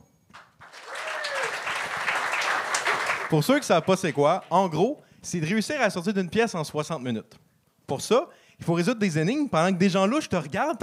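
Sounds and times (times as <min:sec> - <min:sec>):
audience applause: 0:00.4 - 0:04.7
speech: 0:03.3 - 0:10.8.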